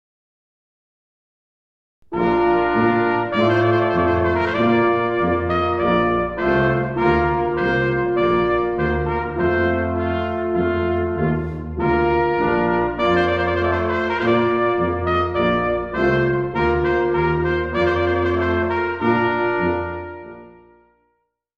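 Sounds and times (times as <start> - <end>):
trumpet piece: 2.0 - 21.2.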